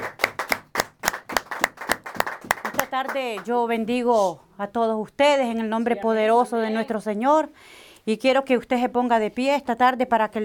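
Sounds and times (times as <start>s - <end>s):
audience clapping hands: 0.0s - 3.6s
speech: 2.9s - 10.4s.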